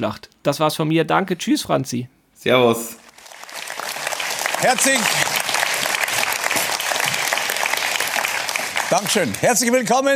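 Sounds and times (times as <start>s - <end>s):
speech: 0.0s - 3.0s, 4.6s - 5.4s, 8.9s - 10.1s
studio audience applause: 3.1s - 10.1s.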